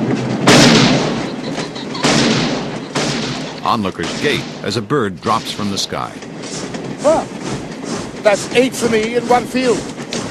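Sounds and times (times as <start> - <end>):
speech: 0.2 - 0.4, 3.7 - 6.3, 7.0 - 7.6, 8.2 - 9.9
pistol gunshot: 0.4 - 1.4, 2.0 - 4.7.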